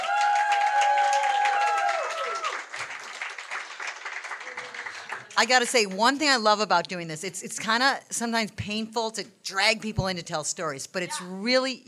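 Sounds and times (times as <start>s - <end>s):
whoops and cheers: 0.0s - 2.7s
audience applause: 0.0s - 5.6s
speech: 5.4s - 11.8s.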